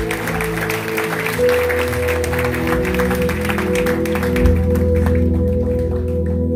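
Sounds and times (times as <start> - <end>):
audience applauding loudly: 0.0 - 6.4.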